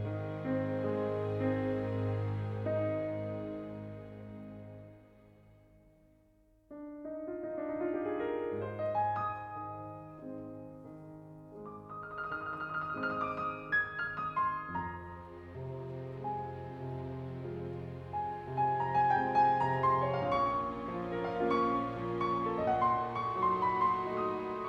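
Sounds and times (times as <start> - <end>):
piano concerto: 0.0 - 5.9, 6.7 - 24.6.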